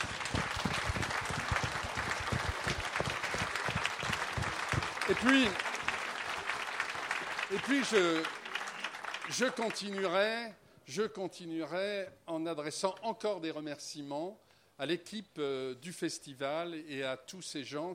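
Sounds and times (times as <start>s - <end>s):
audience applause: 0.0s - 10.2s
speech: 5.1s - 5.6s, 7.5s - 8.4s, 9.3s - 17.9s.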